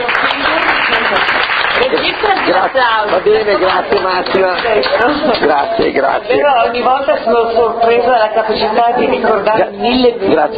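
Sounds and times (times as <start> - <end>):
audience applause at a talk about a book: 0.0 - 6.0
speech: 2.6 - 10.5.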